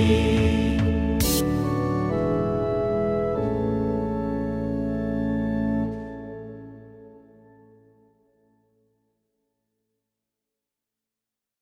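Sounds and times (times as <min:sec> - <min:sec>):
choir singing: 0:00.0 - 0:03.6
organ playing: 0:00.0 - 0:07.8.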